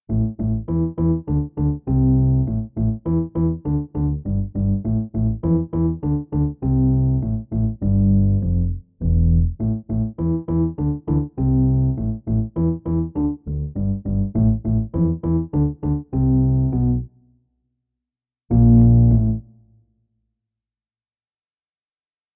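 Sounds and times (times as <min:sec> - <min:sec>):
funk music: 0:00.1 - 0:17.0, 0:18.5 - 0:19.4.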